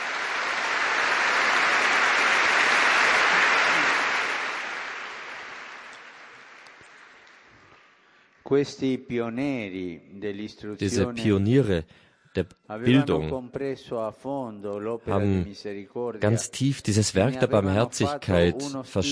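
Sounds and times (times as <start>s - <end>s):
audience applause: 0.0s - 8.0s
speech: 8.5s - 19.1s.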